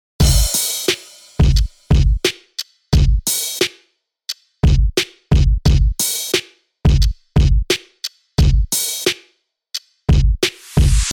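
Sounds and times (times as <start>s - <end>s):
drum: 0.2s - 3.8s, 4.6s - 9.2s, 10.1s - 11.1s.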